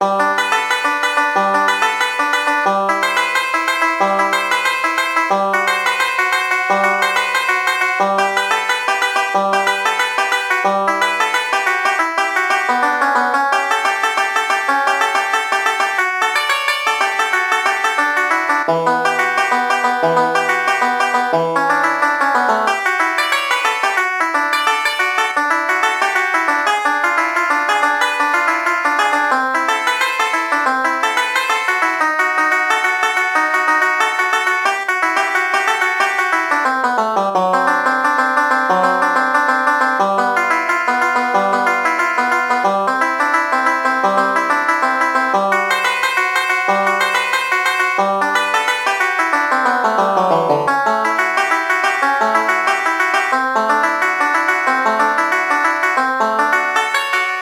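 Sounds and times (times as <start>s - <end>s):
banjo: 0.0s - 57.4s.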